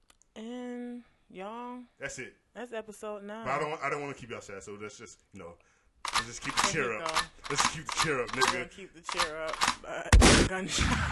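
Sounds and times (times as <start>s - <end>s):
speech: 1.4s - 11.1s
gunshot sound effect: 10.1s - 11.1s.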